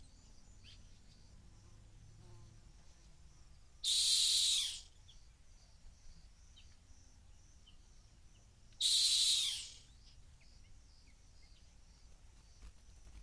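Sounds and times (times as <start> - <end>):
rock hyrax shrieking at the edge of a gorge in the Masai Mara: 3.9 - 4.8, 8.8 - 9.8.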